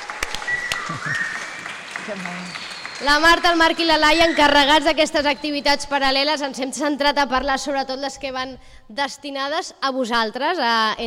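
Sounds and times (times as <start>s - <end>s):
applause at the Sitges festival for a festival worker: 0.0s - 4.9s
speech: 0.9s - 1.4s, 2.1s - 11.0s.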